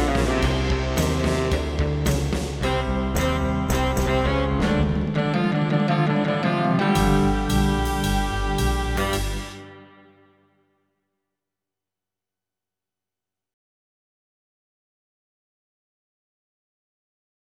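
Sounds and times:
background music: 0.0s - 10.6s.

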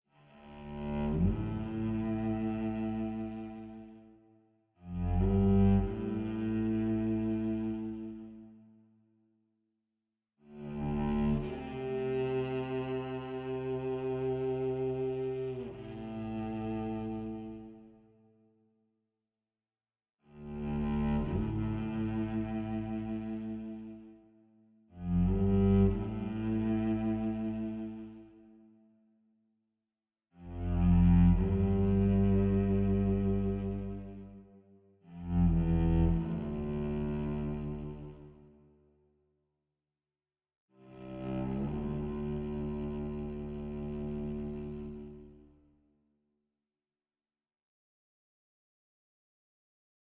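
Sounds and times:
low cello solo: 0.1s - 4.2s, 4.8s - 8.7s, 10.4s - 18.0s, 20.2s - 28.6s, 30.4s - 38.6s, 40.8s - 45.6s.

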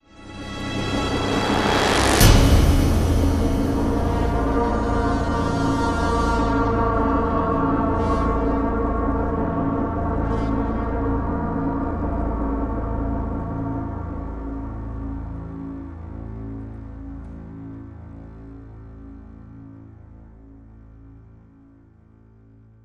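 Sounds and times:
powerful music sting ending: 0.1s - 14.2s.

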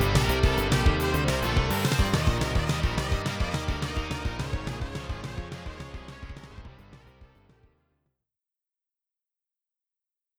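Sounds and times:
game boss music on SC-88: 0.0s - 7.1s.

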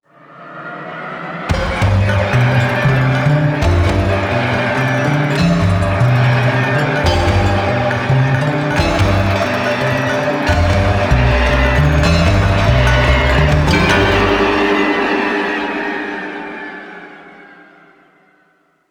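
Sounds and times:
dolphin music: 1.5s - 16.0s.

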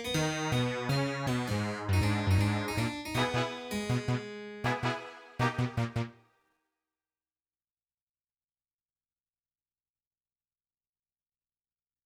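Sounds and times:
fight melody: 0.2s - 6.1s.

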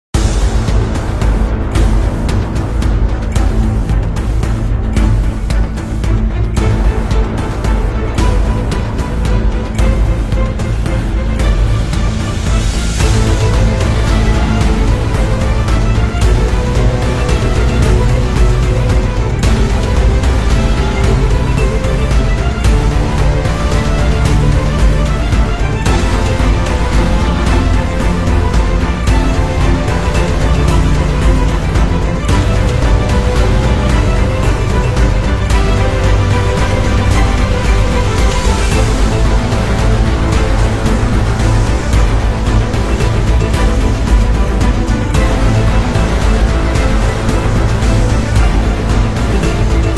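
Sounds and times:
battle music: 0.0s - 49.9s.

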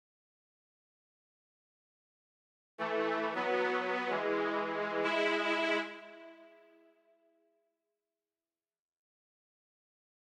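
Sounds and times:
town intro string music: 2.8s - 7.0s.

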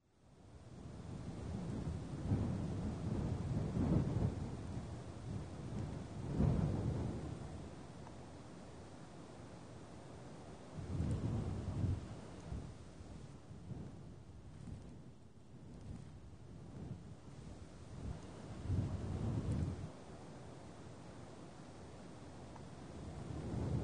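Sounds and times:
ambient wind: 0.0s - 23.8s.

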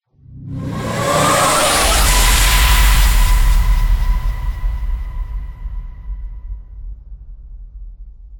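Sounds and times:
transition sound: 0.1s - 5.9s.

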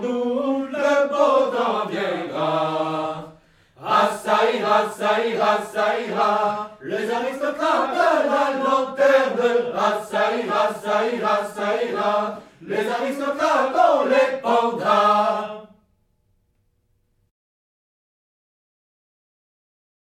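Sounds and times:
choir singing: 0.0s - 15.8s.

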